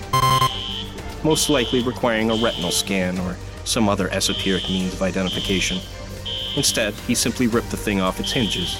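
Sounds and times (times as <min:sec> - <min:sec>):
electronic door lock beep: 0:00.1 - 0:00.7
speech: 0:01.2 - 0:06.0, 0:06.6 - 0:08.7.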